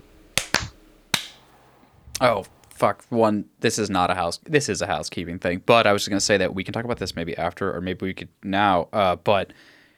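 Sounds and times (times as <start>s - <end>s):
hand clap for audio sync: 0.4s - 1.5s
speech: 2.2s - 9.8s.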